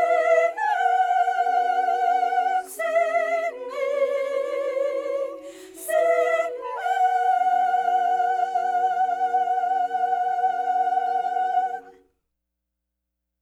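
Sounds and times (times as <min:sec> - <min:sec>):
soprano singing: 0:00.0 - 0:12.0.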